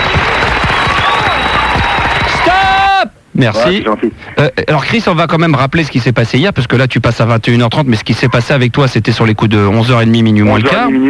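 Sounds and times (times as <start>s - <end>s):
enthusiastic applause for a guest: 0.0s - 3.0s
speech: 3.4s - 11.0s.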